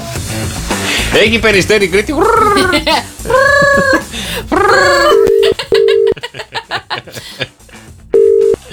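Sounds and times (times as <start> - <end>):
speech: 1.2 - 5.2
wavering meow-like vocal sounds: 2.2 - 5.3
laughter: 2.3 - 7.8
telephone ringing: 5.1 - 6.2, 8.2 - 8.7.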